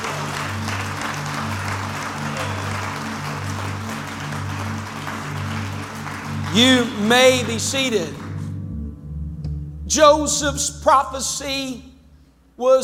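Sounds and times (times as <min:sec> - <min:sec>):
audience clapping hands: 0:00.0 - 0:08.6
sustained low droning tones: 0:00.0 - 0:12.6
speech: 0:06.5 - 0:08.2, 0:10.0 - 0:11.9, 0:12.6 - 0:12.8.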